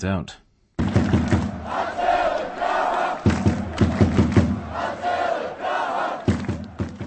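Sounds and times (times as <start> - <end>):
sharp drum-like thumps: 0.8 - 5.0, 6.2 - 7.0
large crowd of ice hockey fans chanting in unison: 0.8 - 7.0.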